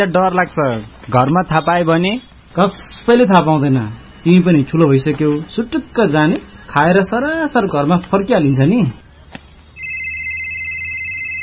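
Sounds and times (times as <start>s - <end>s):
speech: 0.0s - 9.0s
mobile phone ringing with a call from mom: 9.8s - 11.4s.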